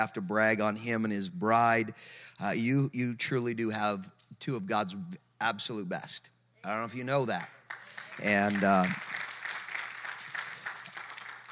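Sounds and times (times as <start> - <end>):
speech: 0.0 - 7.6, 8.2 - 9.2
faint low hum: 0.0 - 11.5
audience applause: 7.3 - 11.5.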